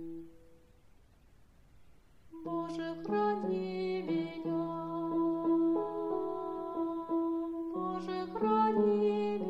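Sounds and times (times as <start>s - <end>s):
tenor singing: 2.3s - 9.4s.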